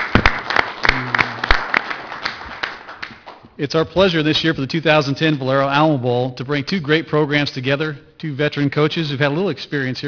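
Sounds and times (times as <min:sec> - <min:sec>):
audience applause: 0:00.0 - 0:03.4
speech: 0:03.6 - 0:10.0.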